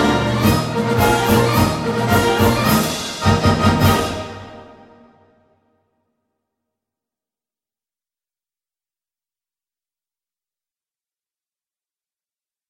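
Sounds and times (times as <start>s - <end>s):
march music: 0.0s - 5.5s.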